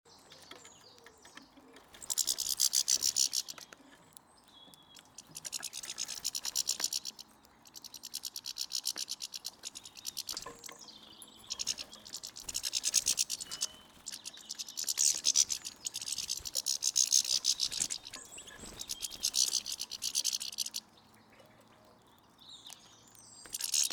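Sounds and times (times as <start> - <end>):
European goldfinch Carduelis carduelis calls: 2.0 - 3.8, 4.9 - 20.9, 22.6 - 23.9.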